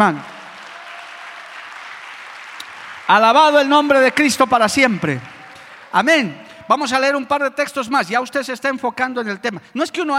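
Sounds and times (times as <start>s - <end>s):
speech: 0.0s - 0.3s, 3.1s - 5.3s, 5.9s - 10.1s
audience applause: 0.0s - 6.7s.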